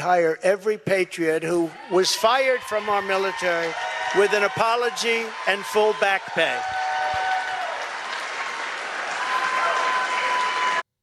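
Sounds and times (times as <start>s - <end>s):
speech: 0.0s - 6.8s
crowd applauding and cheering: 1.5s - 10.9s.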